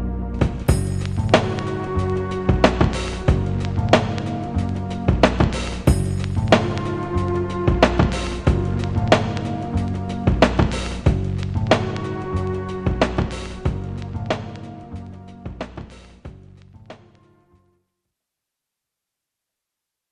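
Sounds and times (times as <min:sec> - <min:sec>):
strings: 0:00.0 - 0:15.5.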